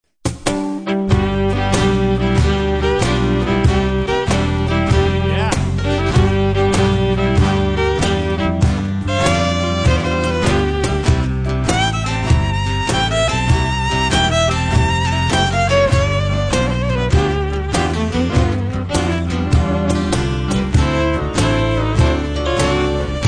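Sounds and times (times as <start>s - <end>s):
cello: 0.8s - 23.2s.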